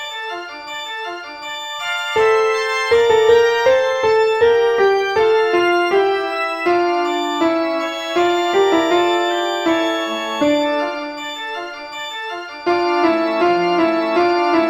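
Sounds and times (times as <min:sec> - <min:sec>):
alto singing a Sanctus: 0:02.2 - 0:11.8, 0:12.7 - 0:14.6.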